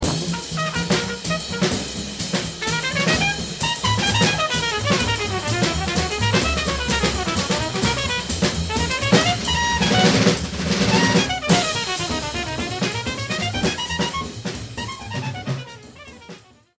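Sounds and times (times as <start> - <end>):
trumpet solo: 0.0 - 16.7.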